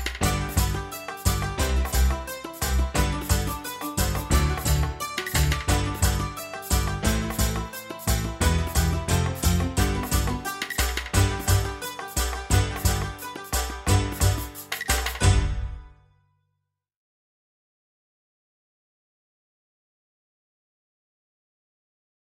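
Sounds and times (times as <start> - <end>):
musical accompaniment only: 0.0 - 16.0.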